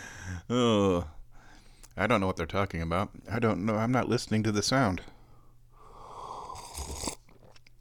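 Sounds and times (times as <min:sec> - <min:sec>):
speech: 0:00.5 - 0:01.1, 0:02.0 - 0:05.1
person sipping tea: 0:05.9 - 0:07.8.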